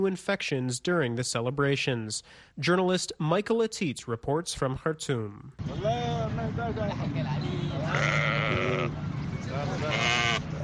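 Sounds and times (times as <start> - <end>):
speech: 0.0 - 10.3
steady crowd murmur: 7.0 - 10.6
sheep bleating at roadside market: 7.7 - 9.0, 9.8 - 10.6.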